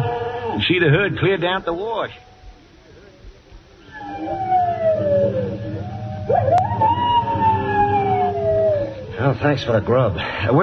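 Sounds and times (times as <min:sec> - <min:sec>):
coyote howling: 0:00.0 - 0:00.8, 0:03.8 - 0:09.9
speech: 0:00.6 - 0:02.3, 0:09.2 - 0:10.6.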